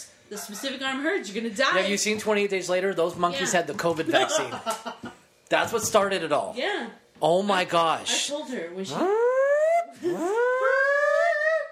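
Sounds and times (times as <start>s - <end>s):
speech: 0.0s - 9.2s, 10.0s - 10.4s
emergency broadcast warning siren wailing: 8.9s - 11.6s.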